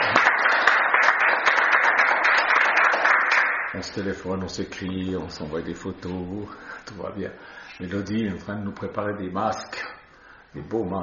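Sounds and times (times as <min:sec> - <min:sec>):
applause: 0:00.0 - 0:04.1
speech: 0:03.8 - 0:09.9, 0:10.5 - 0:11.0.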